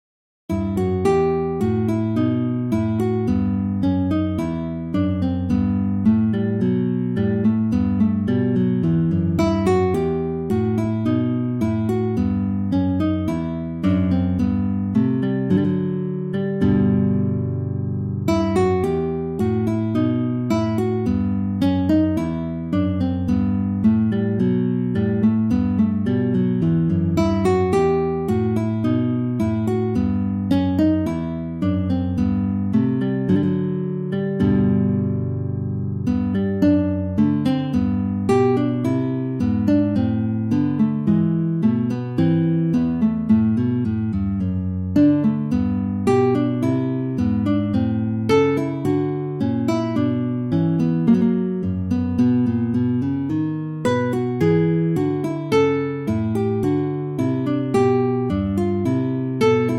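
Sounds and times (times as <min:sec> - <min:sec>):
bourree in E minor on guitar: 0:00.5 - 0:59.7.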